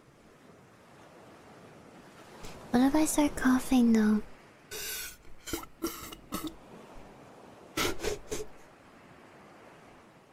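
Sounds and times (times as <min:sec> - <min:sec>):
speech: 0:02.7 - 0:04.3
loud slurping sip of a drink: 0:04.7 - 0:06.6.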